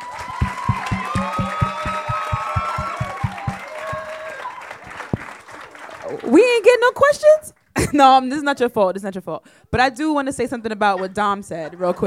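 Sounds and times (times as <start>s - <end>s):
audience applause for a panel: 0.0s - 6.4s
speech: 6.3s - 12.0s
laughter: 10.6s - 12.0s.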